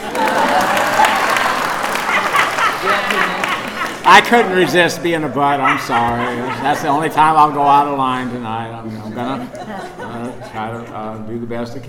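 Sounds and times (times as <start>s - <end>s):
crowd audience clapping: 0.0s - 4.9s
laughter: 0.0s - 11.8s
speech: 4.1s - 11.8s.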